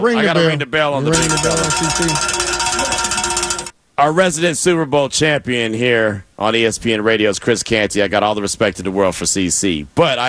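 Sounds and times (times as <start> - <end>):
speech: 0.0 - 2.4, 4.0 - 10.2
bell being rung: 1.1 - 3.7.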